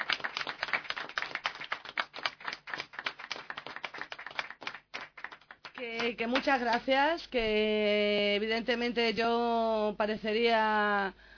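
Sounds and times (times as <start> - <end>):
group of people clapping: 0.0 - 7.1
speech: 5.8 - 11.2.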